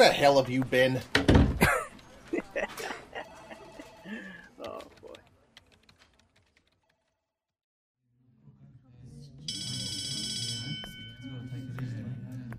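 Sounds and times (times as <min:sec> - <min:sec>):
speech: 0:00.0 - 0:01.3
laughter: 0:01.6 - 0:04.8
school bell ringing: 0:09.5 - 0:11.6.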